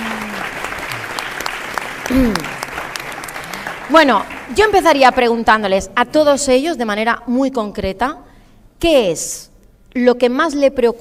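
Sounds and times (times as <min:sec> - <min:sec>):
audience applause: 0:00.0 - 0:05.0
speech: 0:02.1 - 0:02.6, 0:03.9 - 0:11.0.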